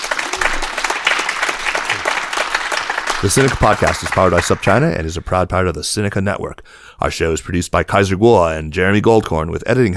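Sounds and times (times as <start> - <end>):
audience applause: 0.0 - 4.8
speech: 3.2 - 9.9.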